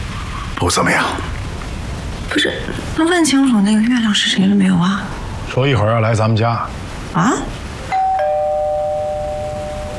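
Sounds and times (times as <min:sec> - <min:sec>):
speech: 0:00.6 - 0:01.4, 0:02.3 - 0:07.6
two-tone doorbell chime: 0:07.9 - 0:09.9.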